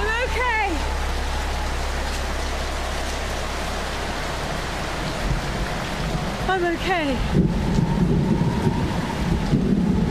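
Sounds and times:
storm rain: 0.0s - 10.0s
speech: 6.6s - 7.6s.

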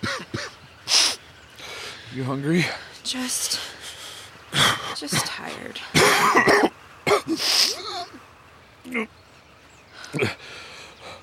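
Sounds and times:
person coughing up blood: 0.0s - 1.2s, 4.5s - 8.2s, 10.1s - 10.4s
speech: 2.1s - 3.7s, 4.6s - 8.3s, 8.9s - 9.2s, 10.1s - 10.4s.

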